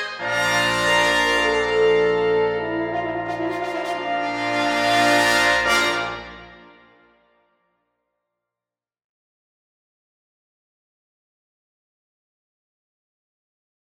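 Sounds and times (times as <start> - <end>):
fanfare: 0.0 - 6.9.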